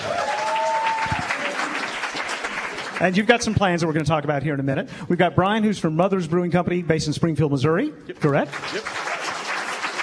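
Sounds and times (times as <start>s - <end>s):
audience applause greeting a brewer on stage: 0.0s - 3.8s, 8.3s - 10.0s
speech: 3.0s - 9.1s.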